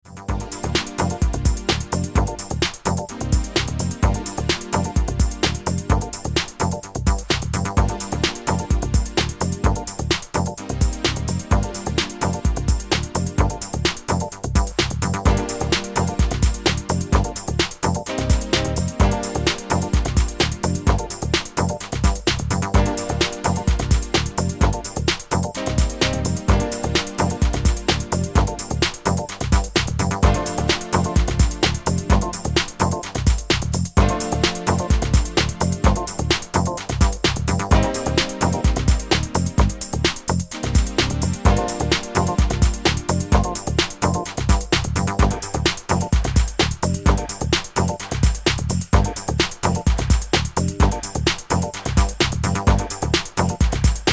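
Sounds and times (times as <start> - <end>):
instrumental music: 0.0 - 54.1.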